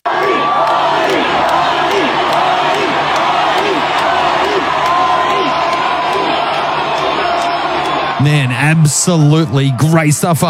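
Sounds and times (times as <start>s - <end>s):
concert crowd chanting a name: 0.0s - 8.2s
speech: 8.2s - 10.4s.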